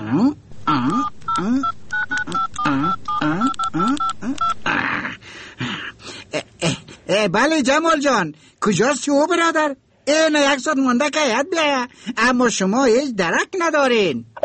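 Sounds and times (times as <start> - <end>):
whining voice-like sound: 0.0 - 5.2
speech: 0.1 - 1.7, 7.3 - 14.4
telephone keypad dialing tones: 0.6 - 4.7.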